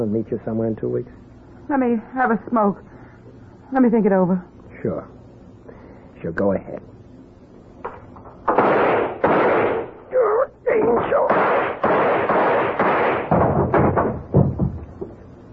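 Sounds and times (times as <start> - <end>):
speech: 0.0 - 3.0, 3.7 - 5.2, 6.2 - 6.9
gun fired until empty: 8.4 - 10.0, 10.7 - 14.2.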